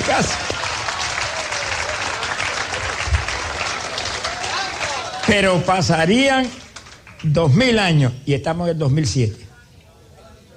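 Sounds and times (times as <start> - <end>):
audience applause: 0.0 - 7.6
speech: 0.1 - 0.6, 5.3 - 6.6, 7.2 - 9.4.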